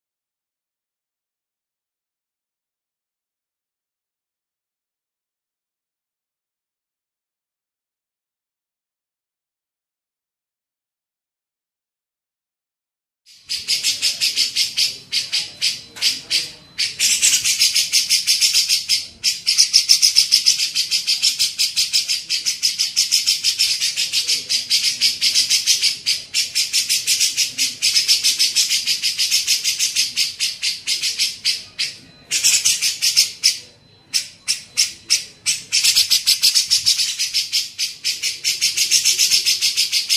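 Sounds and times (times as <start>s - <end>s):
Grey-cheeked bulbul harsh chatter: 13.3s - 40.1s.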